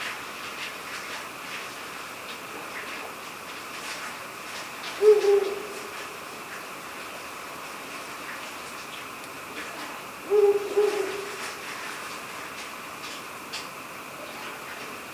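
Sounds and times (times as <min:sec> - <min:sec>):
speech: 0:05.0 - 0:05.5
Ural owl hooting: 0:05.0 - 0:05.9, 0:10.2 - 0:11.4.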